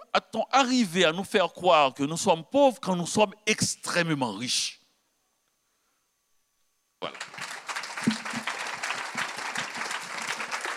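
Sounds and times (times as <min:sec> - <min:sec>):
speech: 0:00.2 - 0:04.8, 0:07.0 - 0:07.3
audience applause at a French-language talk: 0:07.0 - 0:10.7.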